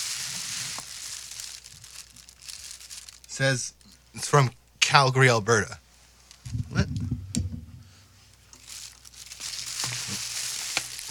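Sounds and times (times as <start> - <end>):
plastic cake package rustling and tearing open: 0.0 - 4.0, 8.5 - 11.0
speech: 3.4 - 5.8.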